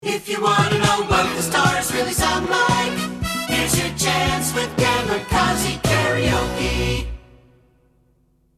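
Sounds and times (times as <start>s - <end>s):
karaoke singing: 0.0s - 7.3s.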